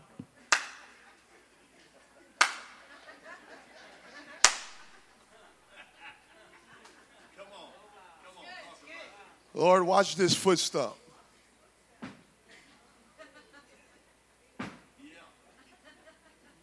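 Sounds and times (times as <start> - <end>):
hand claps echoing: 0.5 - 1.0, 2.4 - 3.0, 4.4 - 5.0
laughter: 0.8 - 8.2, 12.6 - 14.0, 15.4 - 16.6
speech: 9.6 - 11.0.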